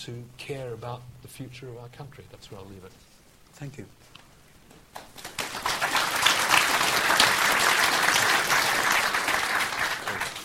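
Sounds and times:
speech: 0:00.0 - 0:04.2
audience applause: 0:05.0 - 0:10.4.

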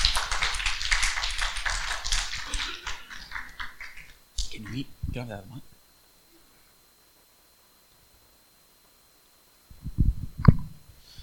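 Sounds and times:
audience clapping: 0:00.0 - 0:04.9
speech: 0:04.6 - 0:05.7.

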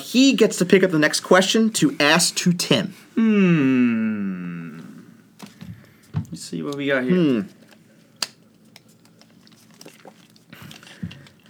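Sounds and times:
speech: 0:00.1 - 0:04.1, 0:06.4 - 0:07.6
piece of paper being unfolded: 0:07.4 - 0:11.4.

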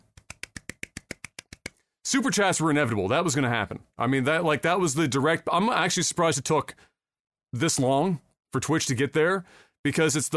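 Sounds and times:
soft golf clap: 0:00.0 - 0:01.8
speech: 0:02.0 - 0:06.9, 0:07.5 - 0:10.3.

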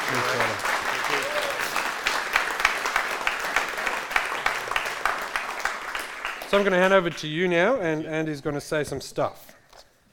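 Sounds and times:
audience applause: 0:00.0 - 0:07.3
speech: 0:06.5 - 0:09.6.

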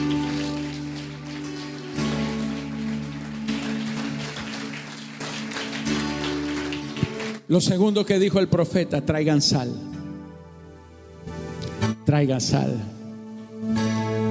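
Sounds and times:
audience applauding: 0:00.0 - 0:07.6
speech: 0:07.5 - 0:09.9, 0:12.1 - 0:13.0.

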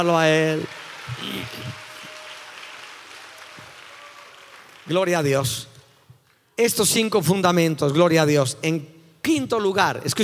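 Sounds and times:
speech: 0:00.0 - 0:01.8, 0:04.9 - 0:05.7, 0:06.6 - 0:10.2
audience applauding: 0:00.0 - 0:05.7.

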